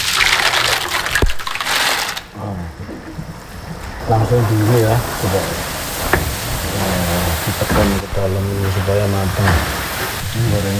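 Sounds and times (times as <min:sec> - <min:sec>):
crackers frying in hot oil: 0:00.0 - 0:02.4, 0:03.5 - 0:10.7
speech: 0:04.1 - 0:05.8, 0:06.8 - 0:10.7.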